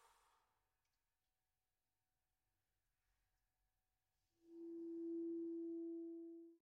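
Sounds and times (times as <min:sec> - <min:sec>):
alto saxophone lullaby: 0:04.4 - 0:06.6.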